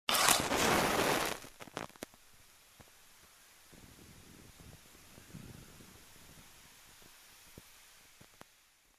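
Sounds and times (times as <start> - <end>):
match lighting on matchbox: 0.1 - 2.2.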